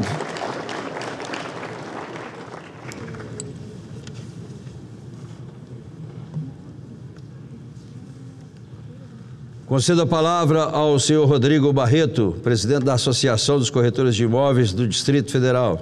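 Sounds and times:
audience applause: 0.0s - 3.4s
speech: 9.7s - 15.8s.

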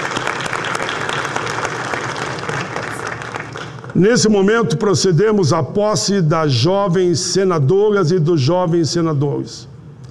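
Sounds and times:
audience applause: 0.0s - 4.0s
speech: 3.9s - 9.7s.

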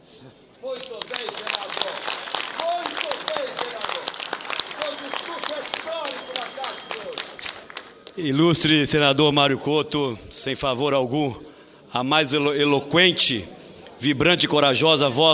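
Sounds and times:
standing ovation applause: 0.7s - 8.2s
speech: 8.2s - 15.3s.

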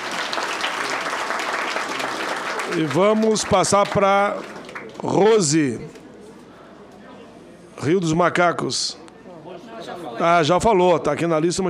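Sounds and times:
crowd applause for councillors at a meeting: 0.0s - 5.6s
speech: 2.7s - 6.0s, 7.8s - 9.0s, 10.1s - 11.6s.

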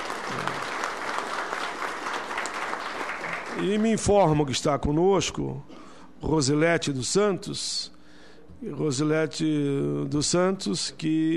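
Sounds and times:
audience applause: 0.0s - 3.8s
speech: 3.6s - 8.0s, 8.6s - 11.3s.

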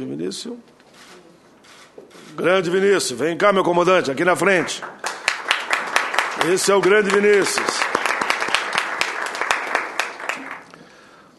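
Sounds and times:
speech: 0.0s - 1.2s, 2.3s - 5.1s, 6.4s - 7.8s
audience applause: 4.4s - 10.8s.

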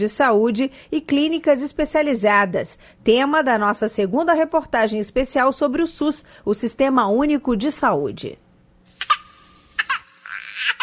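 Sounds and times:
speech: 0.0s - 8.4s
newborn baby crying just after birth: 9.0s - 10.8s.

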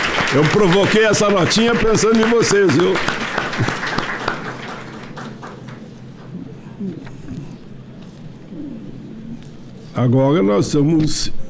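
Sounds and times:
applause: 0.0s - 6.3s
speech: 0.3s - 3.8s, 10.0s - 11.4s.

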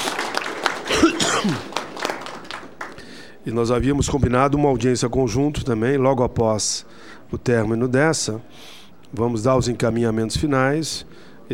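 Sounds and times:
round of applause: 0.0s - 3.3s
speech: 1.4s - 1.8s, 3.4s - 11.5s.

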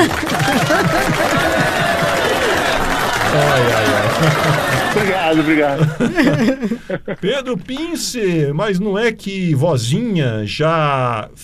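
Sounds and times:
applause: 0.0s - 6.0s
laughter: 0.0s - 7.7s
speech: 5.0s - 11.4s.

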